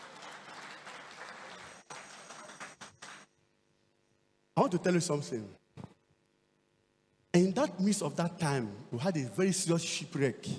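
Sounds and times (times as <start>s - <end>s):
church audience clapping: 0.0s - 3.4s
speech: 4.6s - 5.6s, 7.7s - 10.5s.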